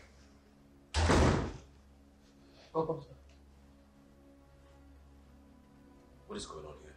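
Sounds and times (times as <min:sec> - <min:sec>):
heavy gate being shut and locked: 0:00.9 - 0:01.7
speech: 0:02.8 - 0:03.3, 0:06.3 - 0:06.9.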